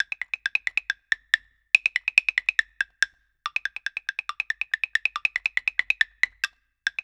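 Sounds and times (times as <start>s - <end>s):
percussion loop: 0.0s - 7.0s.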